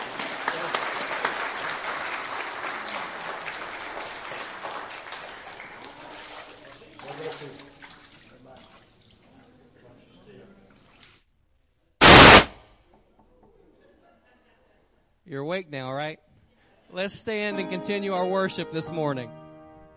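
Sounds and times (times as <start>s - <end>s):
audience applause: 0.0s - 6.1s
speech: 15.3s - 16.2s, 16.9s - 19.4s.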